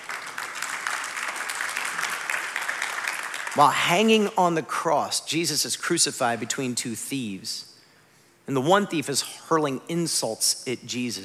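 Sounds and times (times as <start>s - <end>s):
audience applause: 0.0s - 3.7s
speech: 3.6s - 7.7s, 8.5s - 11.2s.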